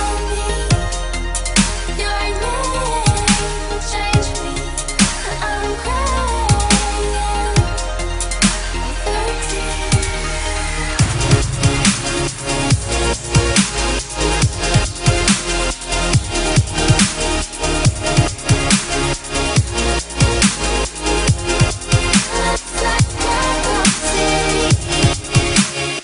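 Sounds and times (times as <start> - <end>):
female vocals: 0.0 - 11.9, 22.1 - 25.5
trance beat: 0.0 - 26.0.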